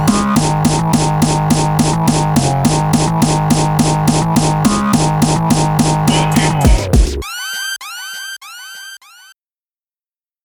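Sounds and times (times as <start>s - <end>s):
phonk music: 0.0s - 7.6s.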